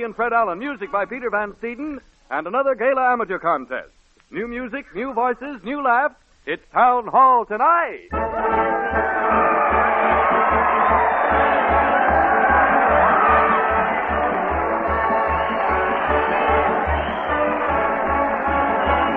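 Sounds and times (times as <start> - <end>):
speech: 0.0 - 9.4
large crowd cheering and shouting: 8.1 - 19.1.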